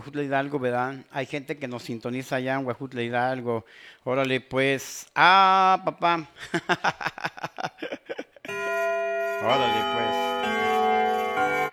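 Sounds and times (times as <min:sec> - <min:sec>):
speech: 0:00.0 - 0:10.2
laughter: 0:06.4 - 0:08.5
clock alarm electronic tone: 0:08.5 - 0:11.7.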